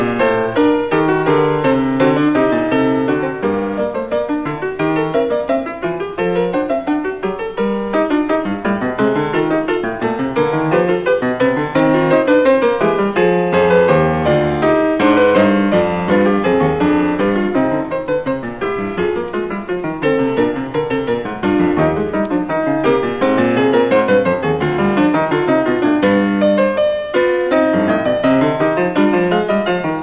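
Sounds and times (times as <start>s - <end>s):
baroque fugue: 0.0s - 30.0s.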